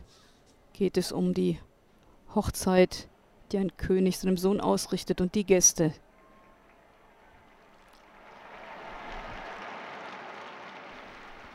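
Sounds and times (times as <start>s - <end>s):
speech: 0.8s - 1.7s, 2.3s - 6.0s
large crowd applauding: 6.2s - 11.5s.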